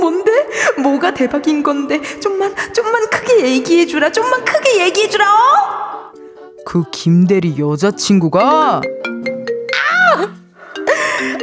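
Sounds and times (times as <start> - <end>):
speech: 0.8 - 6.0, 6.6 - 9.1
mobile phone ringtone: 8.5 - 9.9, 10.7 - 11.4.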